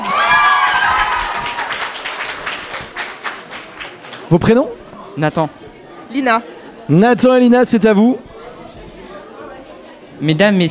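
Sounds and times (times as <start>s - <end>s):
audience applauding: 0.0s - 4.5s
speech: 4.3s - 8.3s, 10.2s - 10.6s.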